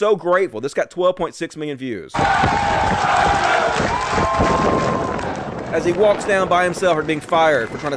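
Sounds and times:
speech: 0.0 - 5.1, 5.7 - 7.9
crowd of soldiers cheering: 2.2 - 7.9.

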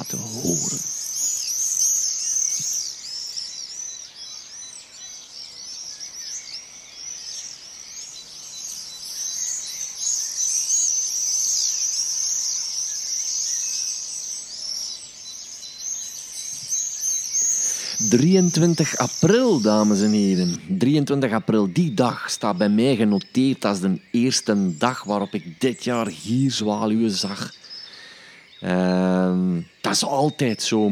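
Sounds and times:
speech: 0.0 - 0.9, 18.1 - 27.6, 28.6 - 30.9
owl chicks calling: 0.0 - 30.9.

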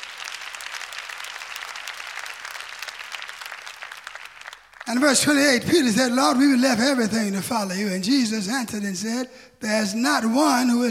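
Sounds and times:
audience clapping hands: 0.0 - 5.5
speech: 4.9 - 10.9.

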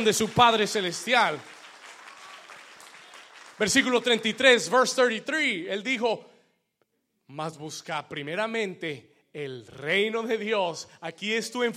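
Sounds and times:
speech: 0.0 - 1.6, 3.6 - 6.3, 7.3 - 11.7
audience applause: 0.0 - 4.6.

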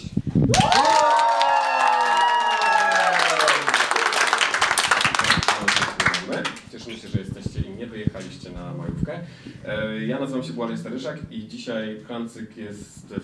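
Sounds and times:
speech: 0.4 - 0.8, 8.0 - 13.2
crowd whooping and cheering: 0.5 - 5.7
live crowd applauding: 0.5 - 7.0.

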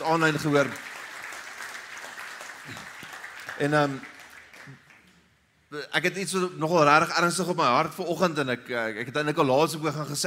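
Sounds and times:
speech: 0.0 - 0.9, 2.7 - 2.9, 3.6 - 4.1, 5.7 - 10.2
church congregation clapping hands: 0.0 - 5.3.

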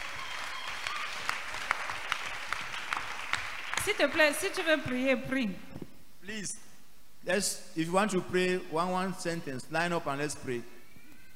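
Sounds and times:
audience clapping: 0.0 - 5.1
speech: 3.9 - 6.6, 7.2 - 10.7.

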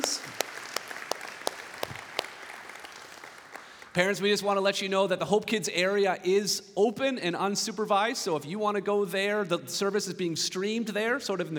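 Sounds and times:
faint audience applauding: 0.0 - 4.1
speech: 4.0 - 11.5.

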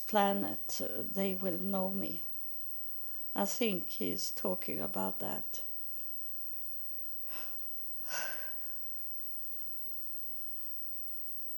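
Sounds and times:
speech: 0.1 - 2.3, 3.4 - 5.7
man taking deep breaths: 7.3 - 9.0.

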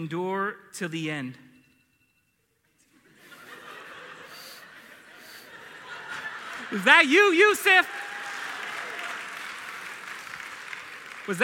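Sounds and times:
speech: 0.0 - 1.5, 6.7 - 8.0, 11.3 - 11.4
laughter: 2.8 - 7.4
audience applause: 5.2 - 11.4.

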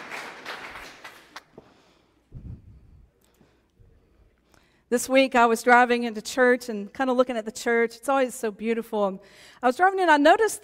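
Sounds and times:
audience applause: 0.0 - 1.5
speech: 4.9 - 10.6.

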